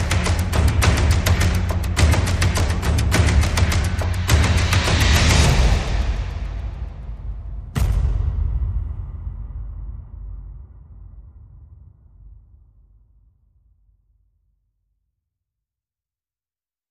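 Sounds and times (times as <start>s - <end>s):
percussion: 0.0s - 13.1s.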